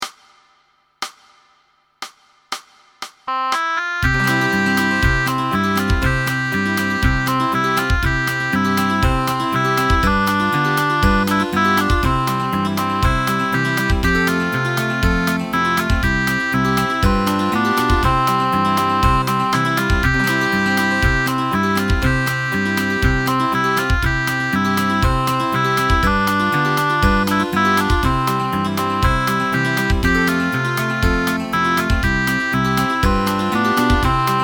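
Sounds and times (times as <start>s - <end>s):
bassoon: 3.3s - 34.4s.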